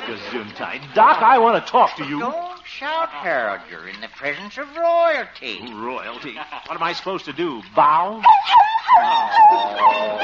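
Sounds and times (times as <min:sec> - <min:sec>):
speech: 0:00.1 - 0:10.2
Pekingese dog whimpering from soap in eyes: 0:08.2 - 0:10.2.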